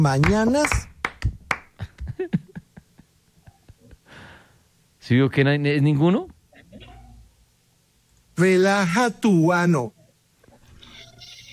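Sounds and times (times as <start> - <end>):
speech: 0.0 - 0.9, 5.1 - 6.3, 8.4 - 10.0
people clapping hands: 0.0 - 2.1.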